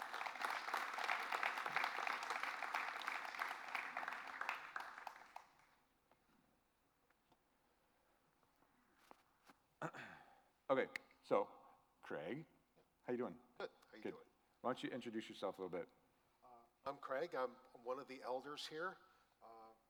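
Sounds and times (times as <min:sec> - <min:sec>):
audience applause: 0:00.0 - 0:05.7
speech: 0:10.7 - 0:12.5, 0:13.1 - 0:16.0, 0:16.8 - 0:19.1.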